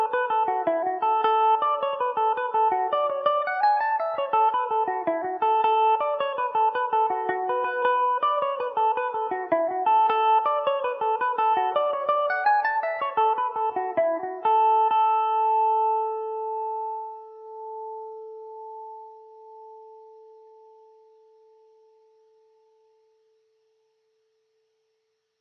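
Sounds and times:
Irish mandolin in A major: 0.0s - 19.0s.

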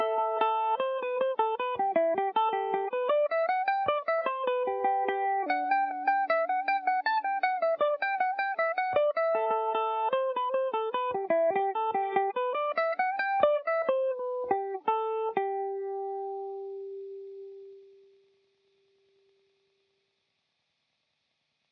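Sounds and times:
Irish mandolin in G major: 0.0s - 17.0s.

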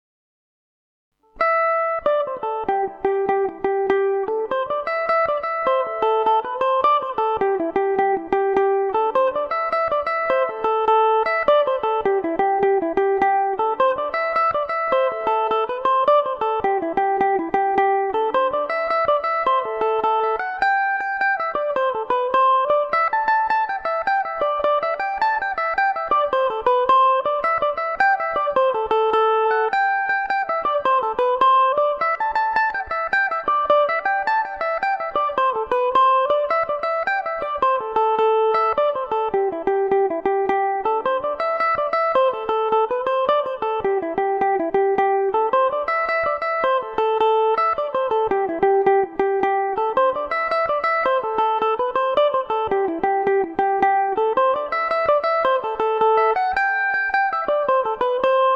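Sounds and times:
Irish mandolin melody in A Dorian: 1.3s - 58.5s.

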